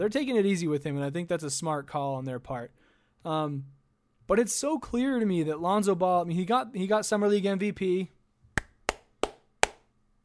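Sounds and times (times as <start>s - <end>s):
speech: 0.0s - 8.2s
hands clapping: 8.6s - 9.9s.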